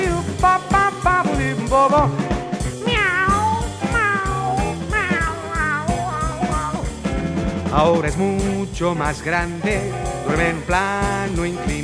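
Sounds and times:
loud musical backing with thumping bass rhythm: 0.0s - 11.8s
drawn-out cat meows sung over music: 2.8s - 6.8s
speech: 7.8s - 11.8s.

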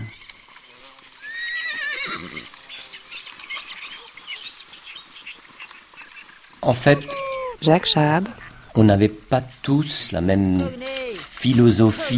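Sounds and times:
horse neighing: 1.2s - 2.7s, 6.6s - 8.8s
speech: 6.6s - 12.1s.

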